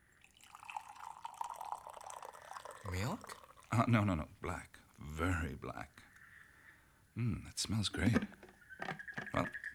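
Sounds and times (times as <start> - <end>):
speech: 2.9 - 6.0, 7.2 - 8.4, 9.4 - 9.7
frogs croaking: 2.9 - 9.7.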